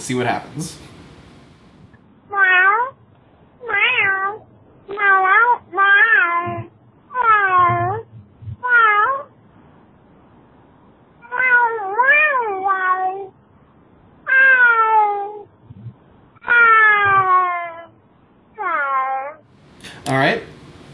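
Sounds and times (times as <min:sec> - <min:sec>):
speech: 0:00.0 - 0:01.0
cat meowing over a phone line: 0:02.3 - 0:03.0, 0:03.6 - 0:09.3, 0:11.2 - 0:13.4, 0:14.2 - 0:15.5, 0:16.4 - 0:18.0, 0:18.6 - 0:19.4.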